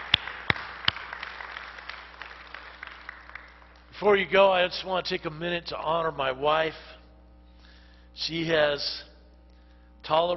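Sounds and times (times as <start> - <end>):
audience clapping: 0.0 - 4.0
speech: 4.0 - 7.0, 8.2 - 9.1, 10.1 - 10.3.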